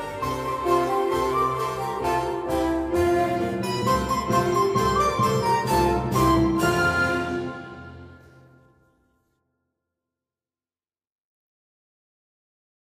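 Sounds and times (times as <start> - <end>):
instrumental music: 0.0 - 9.0.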